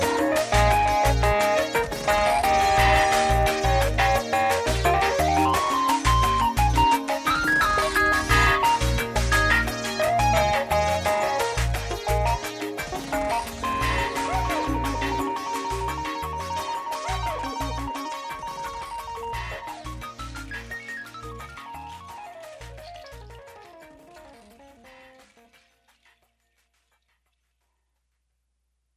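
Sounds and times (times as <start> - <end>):
jingle: 0.0 - 22.6.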